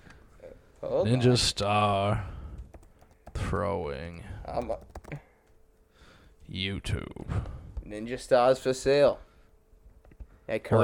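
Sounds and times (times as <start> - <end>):
speech: 0.9 - 2.3, 3.5 - 5.2, 6.5 - 9.3, 10.5 - 10.8
computer keyboard keys tapped while typing a search: 2.7 - 3.4, 4.5 - 5.6.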